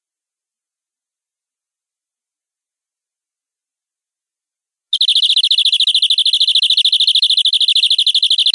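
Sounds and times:
canary rolling trill song: 5.0 - 8.5.

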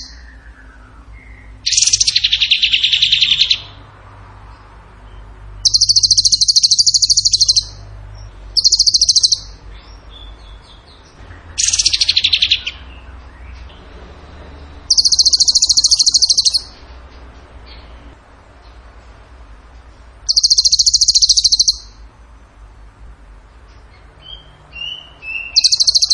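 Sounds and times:
bird chattering trills: 0.0 - 3.8, 5.6 - 13.7, 14.8 - 16.9, 20.3 - 22.0, 24.2 - 26.1.

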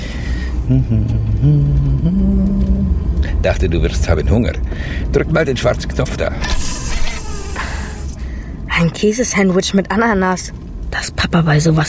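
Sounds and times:
engine of the fastest car in Israel revving and driving off: 0.0 - 9.1
speech: 0.7 - 6.8, 8.8 - 11.8.

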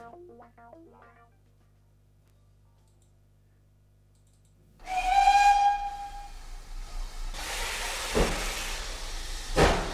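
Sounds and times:
train whistle signalling departure: 4.8 - 6.7.

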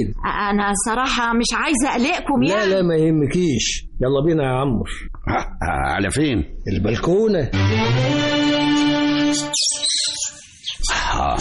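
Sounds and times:
speech: 0.0 - 9.6, 11.2 - 11.3
Australian cage birds chirping: 8.3 - 11.3.

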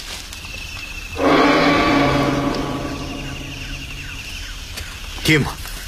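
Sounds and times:
tyrannosaurus rex roar sound effect: 1.2 - 4.0
low rumble: 1.2 - 4.4
speech: 5.3 - 5.6.

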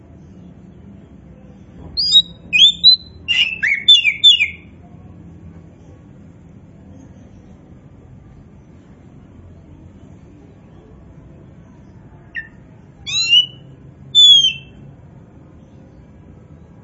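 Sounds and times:
Oriental magpie-robin song of sweet whistles: 2.0 - 4.7, 12.3 - 14.8.

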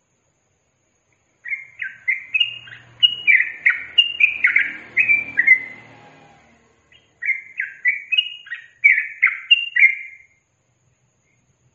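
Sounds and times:
yellow-vented bulbul singing: 1.1 - 10.5.

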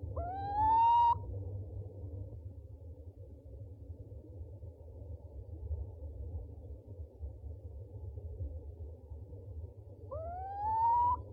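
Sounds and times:
owl calling with upslurred whistles: 0.2 - 1.3, 10.1 - 11.3.

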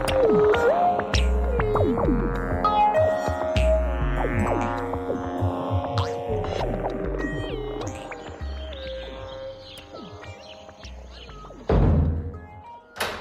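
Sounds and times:
sustained tonal music: 0.0 - 13.2
door being locked with a heavy dull clunk: 12.9 - 13.2.

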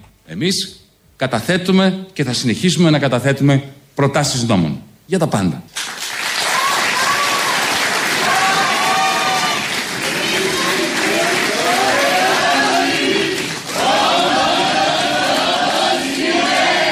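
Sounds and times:
speech: 0.3 - 5.8
crowd clapping: 5.7 - 16.8
crowd chanting a Greek slogan at a left-wing political event: 8.1 - 16.8.

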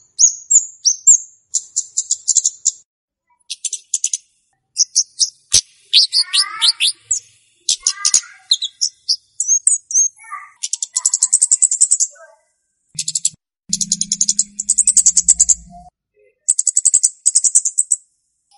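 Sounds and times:
flowerpecker ticking call series: 0.8 - 2.8, 4.8 - 12.2, 13.0 - 15.9, 16.5 - 18.0.

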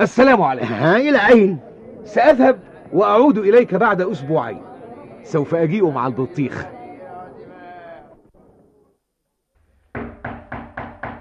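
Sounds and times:
speech: 0.0 - 6.8
knocking on a door: 9.9 - 11.1.

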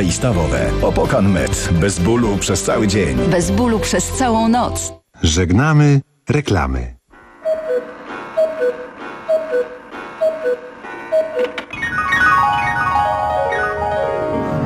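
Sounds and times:
speech: 0.0 - 7.0
cuckoo clock two-note cuckoo calls: 7.1 - 14.0
cuckoo clock descending chiming tones: 7.2 - 14.6.

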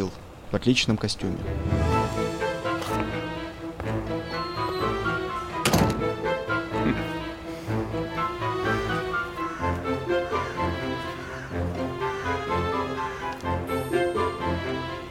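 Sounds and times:
speech: 0.0 - 1.9
music: 1.3 - 15.0
large wooden doors opening: 4.6 - 6.6.

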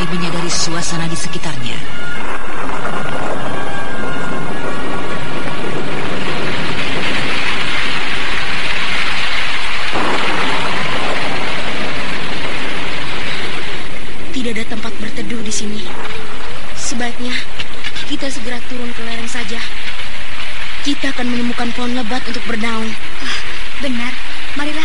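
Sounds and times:
heavy rain falling: 0.0 - 24.8
speech: 0.1 - 2.6, 16.9 - 17.5, 18.1 - 19.8, 20.8 - 24.8.

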